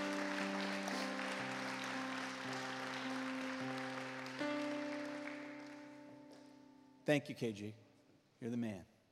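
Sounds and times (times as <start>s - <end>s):
steady applause from a crowd: 0.0s - 6.0s
speech: 7.1s - 7.8s, 8.4s - 8.9s.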